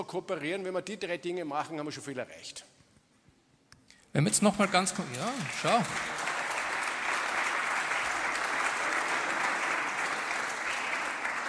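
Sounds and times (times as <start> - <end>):
speech: 0.0 - 2.7, 4.1 - 6.2
spontaneous crowd applause at a conference: 4.3 - 11.4.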